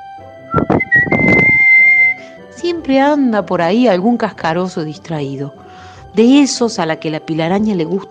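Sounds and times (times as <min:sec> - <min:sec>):
thin steady high-pitched whistle: 0:00.5 - 0:02.2
speech: 0:02.6 - 0:08.0.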